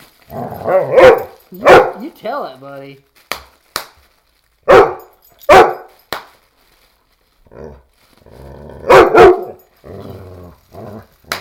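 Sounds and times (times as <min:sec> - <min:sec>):
bubble wrap popping: 0:00.0 - 0:11.3
dog growling: 0:00.3 - 0:01.0, 0:07.5 - 0:09.1, 0:09.8 - 0:11.3
speech: 0:00.3 - 0:03.2
dog barking: 0:00.6 - 0:02.0, 0:04.7 - 0:06.0, 0:08.8 - 0:09.6.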